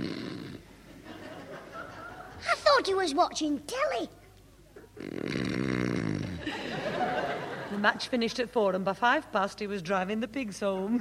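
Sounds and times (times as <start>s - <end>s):
laughter: 1.0s - 2.5s, 6.4s - 8.0s
speech: 2.8s - 4.2s, 7.7s - 10.9s
man snoring during nap: 5.0s - 6.5s.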